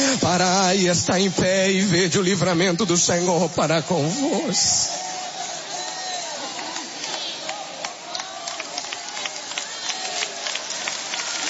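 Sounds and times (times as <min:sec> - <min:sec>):
speech: 0:00.3 - 0:05.0
audience clapping: 0:05.1 - 0:11.4.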